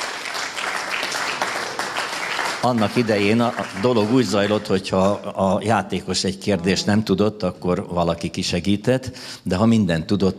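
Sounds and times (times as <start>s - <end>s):
audience applause: 0.0s - 5.4s
speech: 2.6s - 10.3s.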